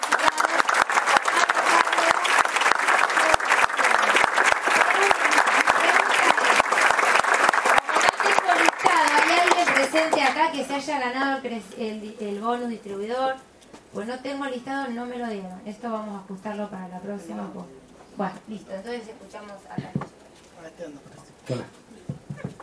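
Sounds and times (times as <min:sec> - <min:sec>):
audience applause: 0:00.0 - 0:10.4
speech: 0:10.7 - 0:20.0, 0:20.8 - 0:21.8.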